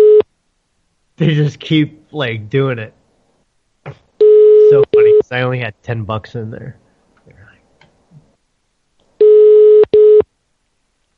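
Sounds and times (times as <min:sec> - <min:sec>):
telephone ringing tone on Skype call: 0:00.0 - 0:00.2, 0:04.2 - 0:05.2, 0:09.2 - 0:10.2
speech: 0:01.2 - 0:03.0, 0:04.7 - 0:07.4.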